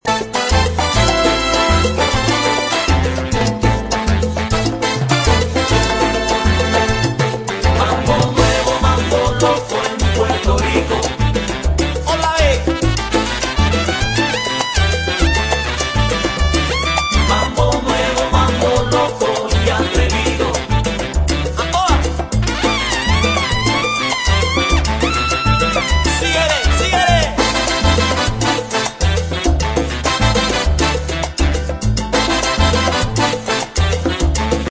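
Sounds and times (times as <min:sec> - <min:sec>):
mambo music: 0:00.0 - 0:34.6.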